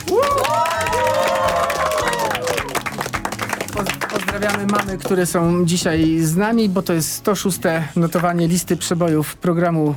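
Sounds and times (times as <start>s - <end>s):
applause: 0.0s - 5.4s
speech: 4.4s - 9.9s.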